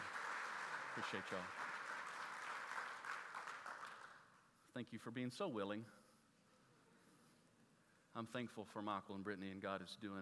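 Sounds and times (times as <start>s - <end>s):
audience applause: 0.0s - 4.3s
speech: 1.0s - 1.6s, 4.8s - 6.0s, 8.2s - 10.2s.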